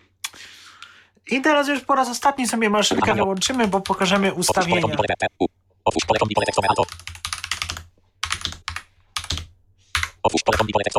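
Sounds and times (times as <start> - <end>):
speech: 1.3 - 7.2, 10.4 - 10.9
typing on a full computer keyboard: 6.4 - 10.7.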